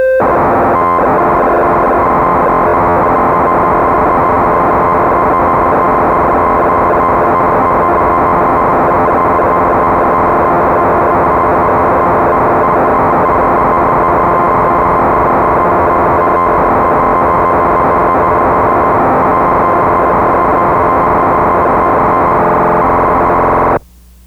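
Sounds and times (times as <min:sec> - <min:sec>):
Crumar Bit One synthesizer: 0:00.2 - 0:23.8.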